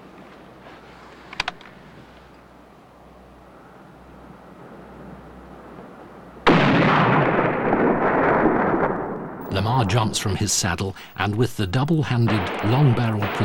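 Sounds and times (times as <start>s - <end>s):
rifle fired through a telescopic sight: 6.5s - 9.5s, 12.2s - 13.4s
speech: 9.8s - 13.4s.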